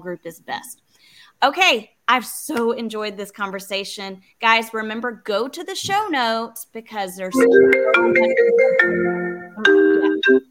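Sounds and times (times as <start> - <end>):
speech: 0.0 - 9.3, 10.3 - 10.5
phone ringing with a melodic electronic ringtone: 7.4 - 10.5.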